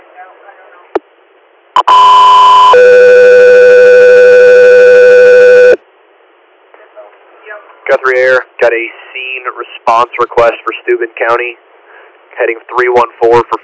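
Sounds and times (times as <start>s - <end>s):
radio dispatch alert tones: 1.8s - 5.8s
speech: 8.0s - 9.0s, 9.6s - 11.6s, 12.4s - 13.6s.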